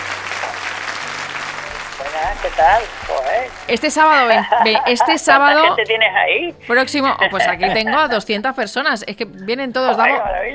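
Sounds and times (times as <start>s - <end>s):
audience applauding: 0.0s - 5.8s
speech: 2.2s - 10.5s
laughter: 3.9s - 6.1s, 7.2s - 8.2s.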